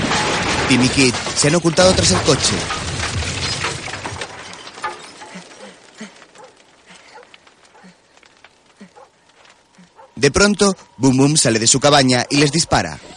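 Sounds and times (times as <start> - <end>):
bomb explosion blowing up a cabin: 0.0 - 4.6
speech: 0.7 - 2.8, 10.2 - 13.1.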